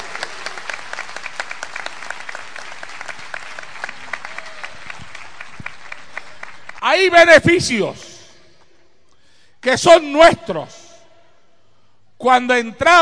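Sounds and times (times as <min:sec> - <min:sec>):
church congregation applauding: 0:00.0 - 0:08.0
speech: 0:07.0 - 0:08.1, 0:09.6 - 0:10.8, 0:12.2 - 0:13.0.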